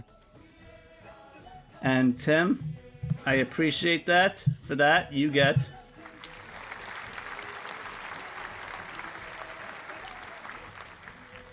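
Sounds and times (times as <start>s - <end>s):
speech: 1.8s - 5.8s
crowd applause: 6.0s - 11.5s.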